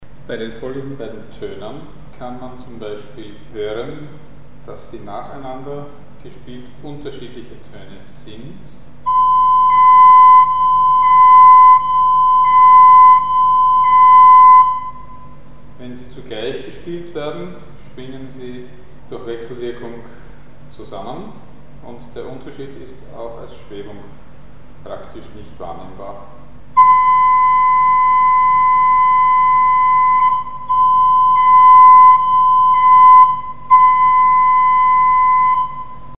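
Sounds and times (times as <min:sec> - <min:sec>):
very similar microtonal frequency tones: 0:09.1 - 0:15.4, 0:26.8 - 0:36.1.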